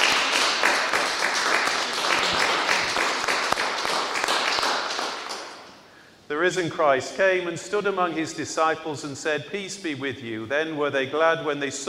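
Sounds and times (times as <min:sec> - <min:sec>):
audience clapping in welcome: 0:00.0 - 0:05.8
speech: 0:06.4 - 0:11.8.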